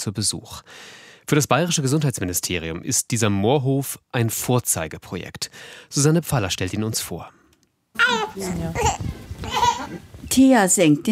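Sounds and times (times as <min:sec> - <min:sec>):
speech: 0:00.0 - 0:07.4, 0:08.0 - 0:11.1
baby babbling and whimpering in a converted former ox stable on an Upper Bavarian moor farm: 0:08.0 - 0:10.1.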